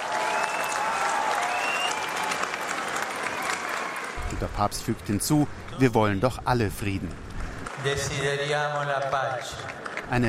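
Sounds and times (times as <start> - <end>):
spontaneous audience applause in Bethlehem: 0.0 - 4.7, 7.2 - 10.2
speech: 4.3 - 10.2.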